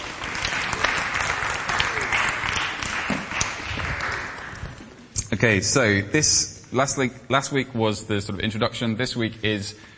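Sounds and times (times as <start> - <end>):
crowd applause: 0.0 - 5.1
speech: 5.4 - 9.9.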